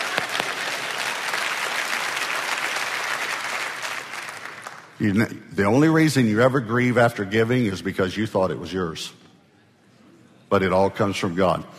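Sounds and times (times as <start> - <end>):
crowd applause: 0.0 - 5.0
speech: 5.0 - 9.2, 10.5 - 11.7.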